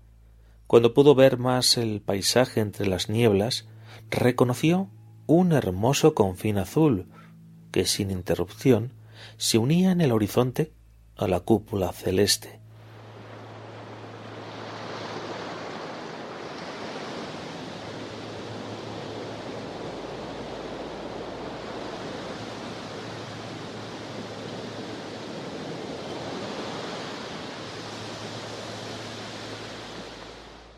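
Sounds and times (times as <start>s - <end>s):
speech: 0.7s - 12.6s
ocean waves breaking on shore: 12.7s - 30.7s.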